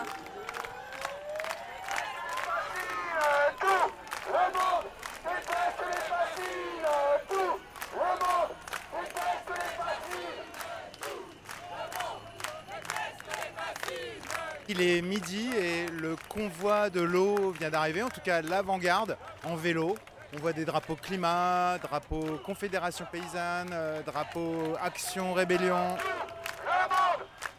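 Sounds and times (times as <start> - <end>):
applause at arriving convoy: 0.0 - 27.5
crowd noise at arriving convoy: 0.0 - 27.5
speech: 14.7 - 26.2.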